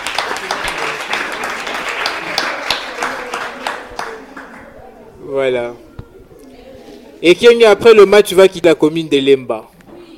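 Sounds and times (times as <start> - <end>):
audience applause: 0.0 - 4.7
speech: 5.4 - 5.9, 7.2 - 9.7.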